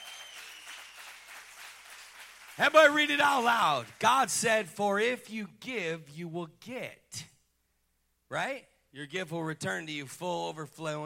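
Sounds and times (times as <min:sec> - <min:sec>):
audience clapping hands: 0:00.0 - 0:04.5
speech: 0:02.6 - 0:07.3, 0:08.3 - 0:11.0.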